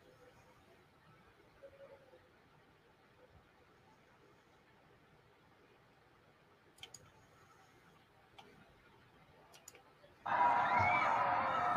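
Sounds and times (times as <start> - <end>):
people screaming in a recorded clip: 10.3 - 11.7.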